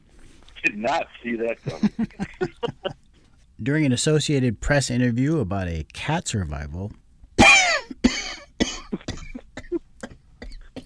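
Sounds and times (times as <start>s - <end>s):
speech: 0.6s - 3.0s, 3.6s - 7.0s
laughter: 1.6s - 3.0s
person coughing: 7.4s - 10.8s.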